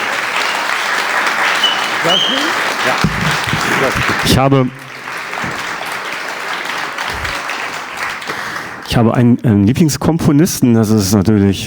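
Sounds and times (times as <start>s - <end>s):
audience clapping: 0.0s - 9.3s
person shouting or cheering: 2.0s - 3.1s
speech: 2.0s - 4.8s, 8.9s - 11.6s.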